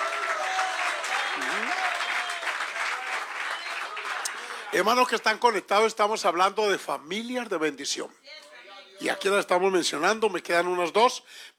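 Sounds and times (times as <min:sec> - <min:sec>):
audience applause: 0:00.0 - 0:05.2
person whooping: 0:00.3 - 0:02.5
speech: 0:04.7 - 0:08.4, 0:09.0 - 0:11.5.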